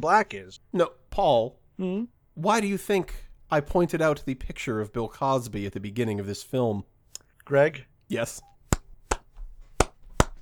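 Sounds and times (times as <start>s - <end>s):
speech: 0.0s - 6.9s, 7.5s - 8.5s
slow hand claps: 8.7s - 10.3s.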